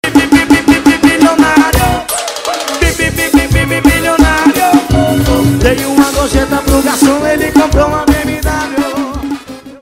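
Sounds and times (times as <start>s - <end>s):
forró estourado music: 0.0s - 9.8s.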